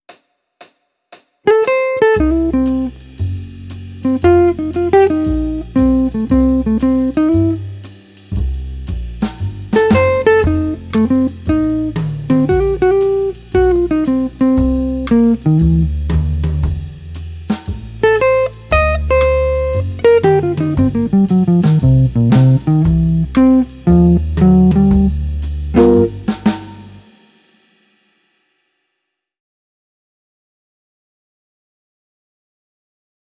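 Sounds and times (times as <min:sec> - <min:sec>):
jazz guitar: 0:01.5 - 0:27.1.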